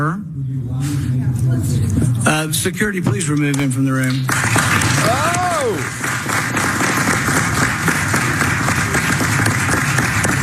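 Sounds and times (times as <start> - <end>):
speech: 0.0 - 6.2
committee room crowd applause: 4.0 - 10.4.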